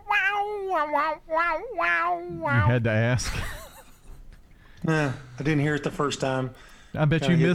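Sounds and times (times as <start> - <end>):
mouth guitar screech made with voice: 0.8 - 2.8
speech: 0.8 - 3.6, 4.8 - 7.5.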